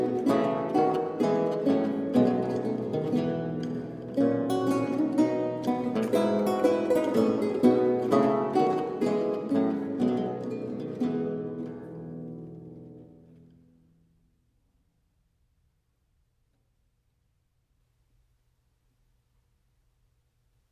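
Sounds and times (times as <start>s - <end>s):
lute duet playing a gavotte in F major: 0.0s - 13.6s.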